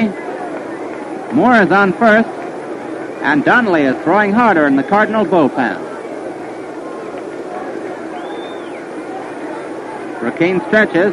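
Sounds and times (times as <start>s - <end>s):
baseball stadium crowd shouting and yelling: 0.0s - 11.1s
speech: 1.3s - 2.5s, 3.2s - 5.9s, 10.3s - 11.1s
high whistle-like tone: 8.2s - 8.9s.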